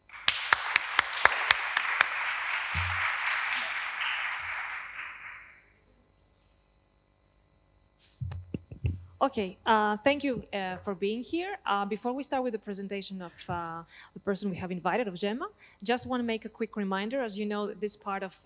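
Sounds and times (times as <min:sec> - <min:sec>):
audience applause: 0:00.0 - 0:05.7
speech: 0:09.2 - 0:18.4.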